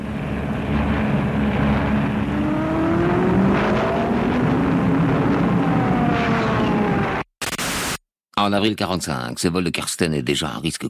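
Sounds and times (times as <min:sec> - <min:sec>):
Allied military aircraft flying over Berlin during bombing raids: 0:00.0 - 0:07.2
speech: 0:08.5 - 0:10.8.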